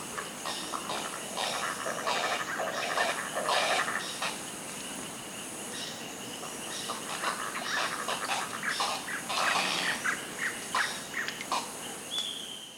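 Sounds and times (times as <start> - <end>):
high hiss: 0.0 - 12.7
birds squawking and chirping: 0.2 - 4.5, 6.6 - 11.8.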